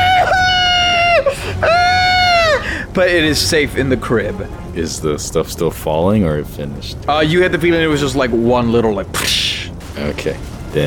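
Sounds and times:
voice imitating a baby crying: 0.0s - 2.6s
speech: 3.0s - 9.4s, 10.0s - 10.8s.

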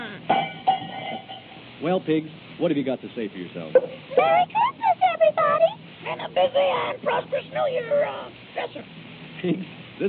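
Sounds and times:
cowbell clanking: 0.3s - 1.7s
speech: 1.8s - 4.7s, 5.5s - 10.0s.

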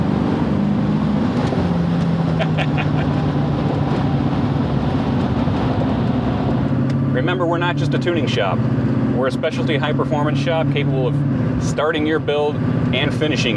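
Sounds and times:
turbocharged engine with Borg Warner S488 SXE turbo revving: 0.0s - 13.5s
laughter: 2.4s - 3.3s
speech: 7.3s - 13.5s.

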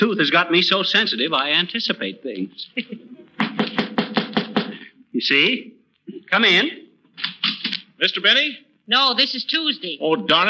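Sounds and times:
speech: 0.0s - 3.9s, 5.2s - 5.7s, 6.3s - 6.8s, 8.0s - 10.4s
laughter: 2.6s - 4.0s
knocking on a door: 3.4s - 4.8s.

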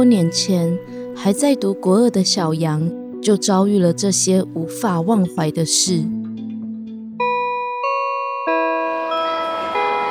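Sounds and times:
speech: 0.0s - 6.4s
school class-end bell: 7.2s - 10.1s.

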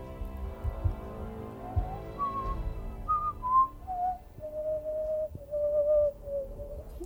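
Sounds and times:
soft patter of noise: 0.0s - 7.0s
person whistling a song melody: 1.6s - 7.0s.

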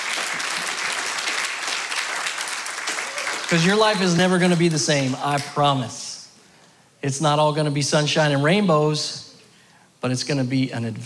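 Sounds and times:
audience round of applause: 0.0s - 5.2s
speech: 3.5s - 6.0s, 7.0s - 9.2s, 10.0s - 11.0s.

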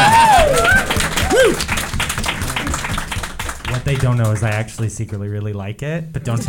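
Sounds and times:
audience applause: 0.0s - 5.2s
speech: 4.0s - 6.4s.

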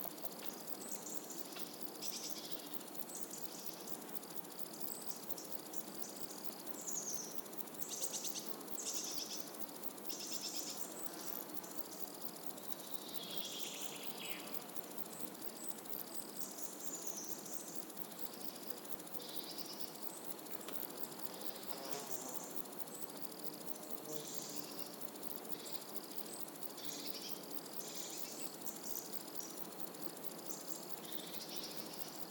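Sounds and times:
insects buzzing on a warm summer morning: 0.0s - 32.2s.

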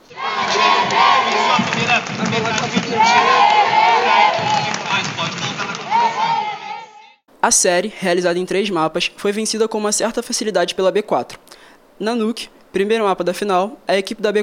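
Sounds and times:
large esports crowd cheering and shouting: 0.0s - 7.2s
speech: 7.4s - 14.4s.

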